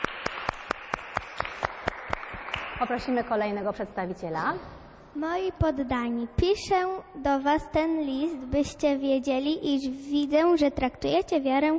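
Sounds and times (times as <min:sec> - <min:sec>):
applause for a team after a group presentation: 0:00.0 - 0:03.5
speech: 0:02.8 - 0:11.7.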